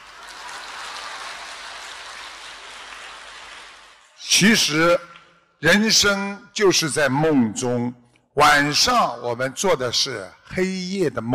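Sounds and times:
crowd audience applause: 0.0s - 4.2s
speech: 4.2s - 11.3s.

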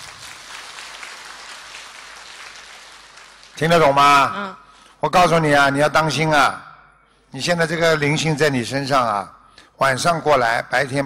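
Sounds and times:
applause: 0.0s - 4.0s
speech: 3.6s - 6.7s, 7.3s - 11.0s.

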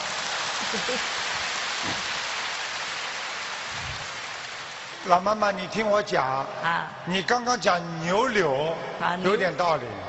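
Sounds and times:
audience applause: 0.0s - 5.3s
speech: 0.7s - 2.2s, 5.0s - 10.0s.

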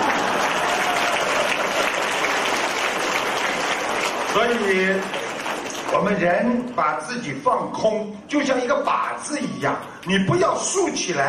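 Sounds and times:
audience applause: 0.0s - 6.2s
speech: 4.4s - 5.2s, 5.9s - 11.2s.

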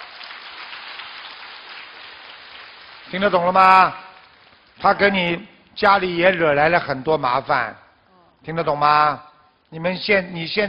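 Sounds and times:
applause: 0.0s - 4.8s
speech: 3.1s - 4.0s, 4.8s - 7.8s, 8.4s - 10.6s.

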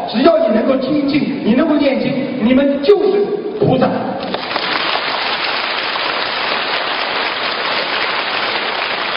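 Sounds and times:
speech: 0.1s - 4.3s
audience applause: 4.3s - 9.1s.

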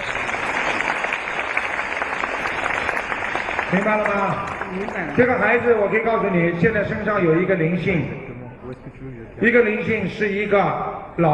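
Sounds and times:
audience applause: 0.0s - 6.1s
speech: 3.7s - 8.3s, 9.0s - 11.3s.

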